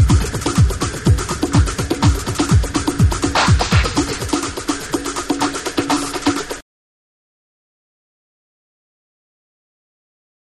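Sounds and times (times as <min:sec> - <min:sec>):
drums: 0:00.0 - 0:06.6.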